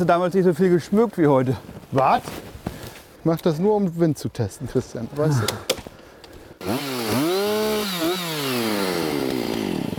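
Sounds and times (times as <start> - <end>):
speech: 0.0 - 2.5, 3.2 - 5.8, 6.6 - 7.2
chainsaw cutting into wood: 6.6 - 9.9.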